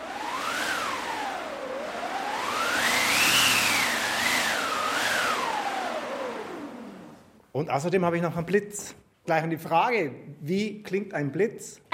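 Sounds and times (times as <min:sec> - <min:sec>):
wind machine producing wind sound effect: 0:00.0 - 0:07.4
speech: 0:07.6 - 0:11.9.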